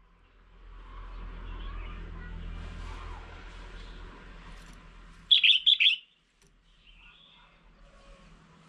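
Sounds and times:
low rumbling background noise: 0.0s - 8.6s
red-whiskered bulbul calling: 5.3s - 6.2s.

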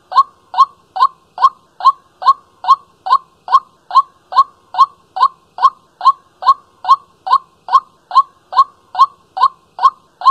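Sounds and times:
white-breasted waterhen giving short hard notes: 0.0s - 10.3s.

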